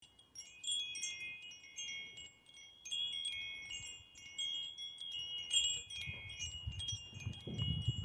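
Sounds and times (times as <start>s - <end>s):
wind chimes: 0.0s - 8.0s.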